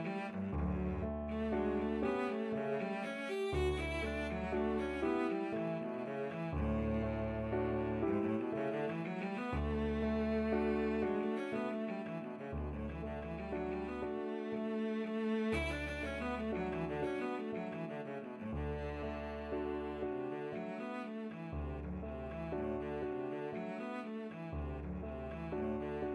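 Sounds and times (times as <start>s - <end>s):
berceuse played on cello: 0.0s - 26.1s.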